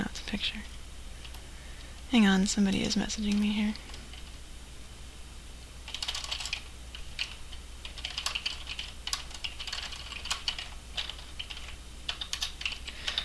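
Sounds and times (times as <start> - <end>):
speech: 0.3 - 0.8, 2.1 - 4.0
typing on a keyboard: 5.9 - 13.2.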